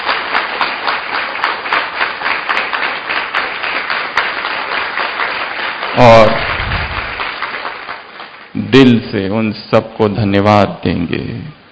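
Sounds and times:
crowd clapping: 0:00.0 - 0:09.0
speech: 0:06.0 - 0:06.4, 0:08.7 - 0:11.6.

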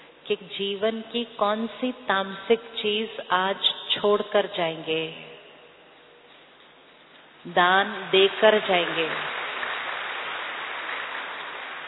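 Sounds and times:
speech: 0:00.3 - 0:05.3, 0:07.4 - 0:09.3
crowd clapping at a spiritual talk: 0:08.3 - 0:11.8.

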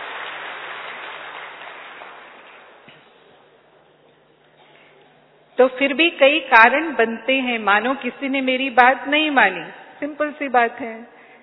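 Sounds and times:
audience applause: 0:00.0 - 0:03.3
speech: 0:05.6 - 0:11.2.

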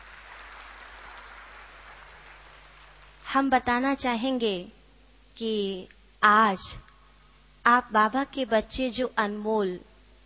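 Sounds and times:
audience applause welcoming a respected senior guest at a gathering: 0:00.0 - 0:03.2
speech: 0:03.3 - 0:04.8, 0:05.4 - 0:06.8, 0:07.6 - 0:09.9.

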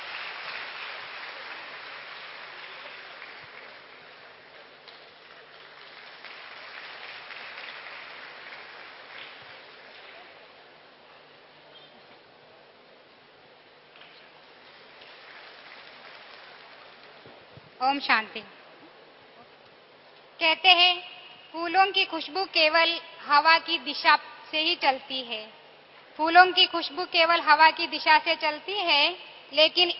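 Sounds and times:
audience applause: 0:00.0 - 0:10.4, 0:14.7 - 0:17.2
speech: 0:17.8 - 0:18.6, 0:20.4 - 0:25.6, 0:26.2 - 0:29.9.

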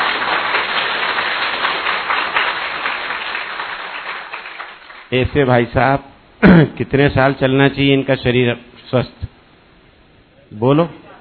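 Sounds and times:
loud applause: 0:00.0 - 0:05.1
speech: 0:05.1 - 0:09.3, 0:10.5 - 0:11.0.

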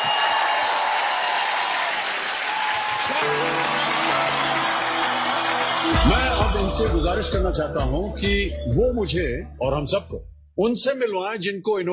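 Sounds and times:
loud audience applause: 0:00.0 - 0:07.3
speech: 0:06.8 - 0:11.9.

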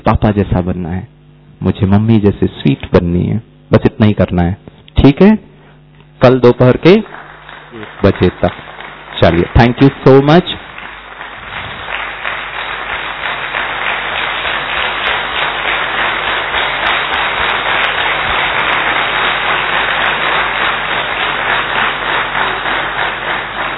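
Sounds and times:
speech: 0:00.0 - 0:05.5, 0:06.2 - 0:07.2, 0:07.8 - 0:10.6
large crowd applauding: 0:06.4 - 0:23.7.

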